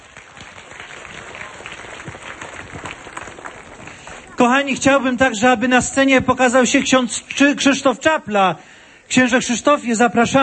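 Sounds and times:
audience applause at a Catholic gathering: 0.0s - 4.7s
speech: 4.4s - 10.4s.

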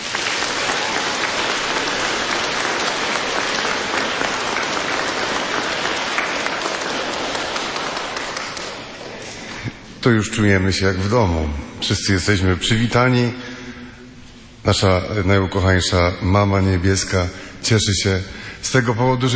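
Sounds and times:
audience applause: 0.0s - 9.6s
speech: 10.0s - 13.5s, 14.6s - 19.3s.

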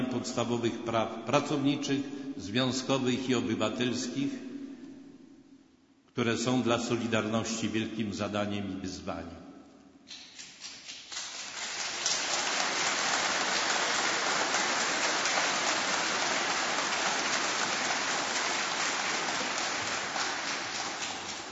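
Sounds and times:
speech: 0.2s - 4.5s, 6.2s - 9.4s
large crowd applauding: 10.9s - 21.5s.

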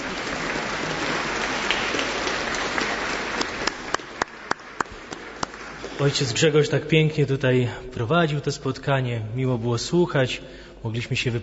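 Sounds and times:
audience applause: 0.0s - 6.4s
speech: 6.0s - 11.4s.

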